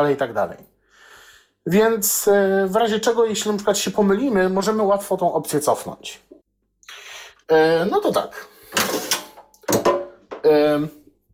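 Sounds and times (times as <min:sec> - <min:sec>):
speech: 0:00.0 - 0:00.7, 0:01.6 - 0:06.4, 0:07.5 - 0:09.0, 0:10.4 - 0:11.0
drawer being pulled out: 0:08.7 - 0:09.8.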